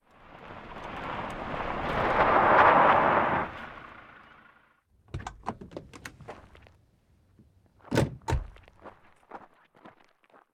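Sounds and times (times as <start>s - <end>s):
car stopping: 0.1s - 6.4s
car door opening: 5.1s - 6.4s, 7.9s - 8.6s.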